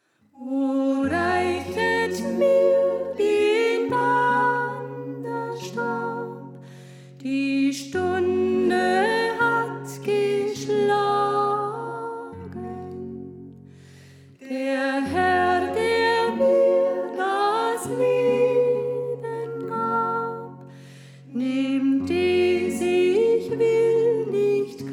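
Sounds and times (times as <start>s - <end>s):
soprano voice: 0.3s - 13.6s, 14.4s - 24.9s.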